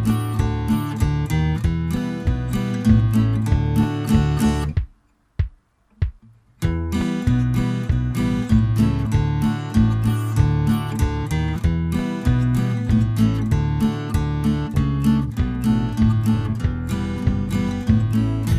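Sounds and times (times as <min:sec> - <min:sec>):
banjo tune: 0:00.0 - 0:04.8, 0:06.6 - 0:18.5.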